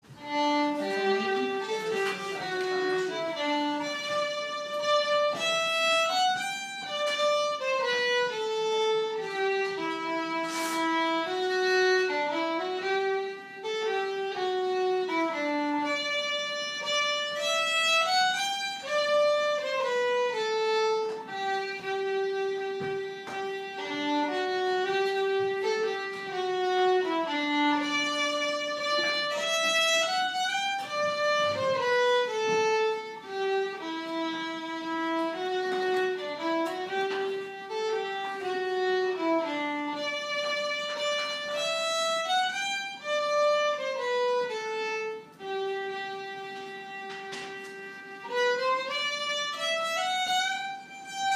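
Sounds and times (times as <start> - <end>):
waltz in G: 0.1 - 51.2.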